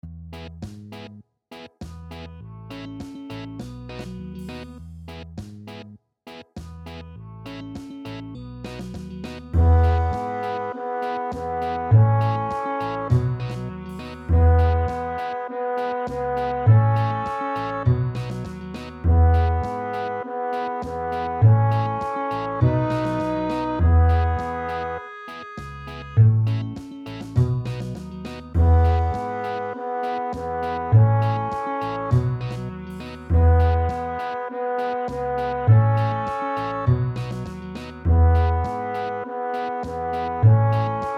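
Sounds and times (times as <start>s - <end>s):
reggae on double bass: 0.0s - 1.2s, 1.8s - 6.0s, 6.6s - 41.1s.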